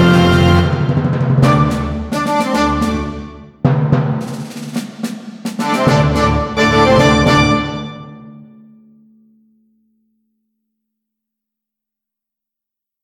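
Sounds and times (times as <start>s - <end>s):
orchestra playing a sonorous allegretto: 0.0s - 3.4s, 5.6s - 8.2s.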